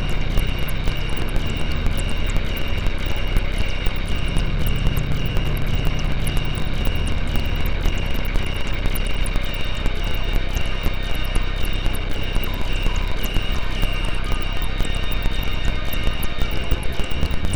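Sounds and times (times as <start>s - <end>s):
menacing synth drone: 0.0s - 17.5s.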